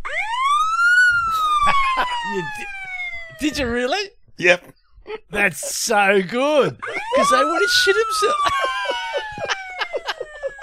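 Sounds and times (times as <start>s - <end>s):
recorded police siren played back from a phone: 0.0s - 4.0s, 6.8s - 10.6s
people laughing: 1.5s - 2.6s, 5.4s - 10.6s
speech: 2.3s - 2.8s, 3.4s - 8.7s.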